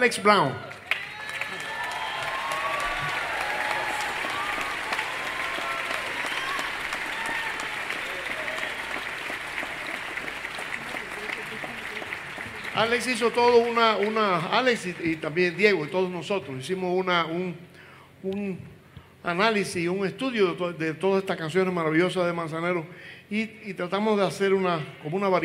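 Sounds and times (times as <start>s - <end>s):
speech: 0.0s - 0.8s, 12.8s - 25.4s
scattered cheers and voices: 0.0s - 9.0s
audience applause: 0.6s - 16.0s.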